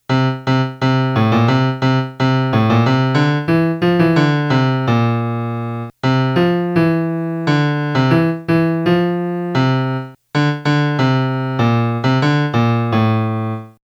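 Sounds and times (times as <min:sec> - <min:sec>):
melody: 0:00.1 - 0:13.8.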